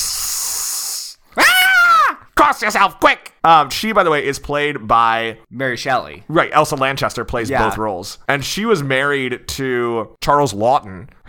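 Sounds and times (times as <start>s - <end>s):
woman hissing: 0.0s - 1.6s
woman shrieking: 1.4s - 2.2s
speech: 2.5s - 11.2s.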